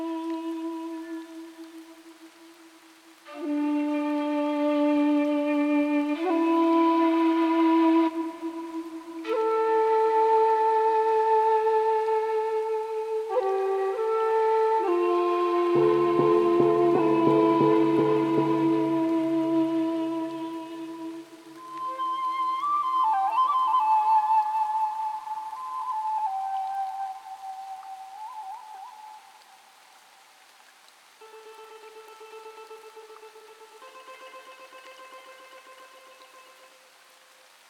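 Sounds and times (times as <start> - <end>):
music: 0.0 - 29.4, 31.2 - 37.6
temple ambience: 15.6 - 20.2.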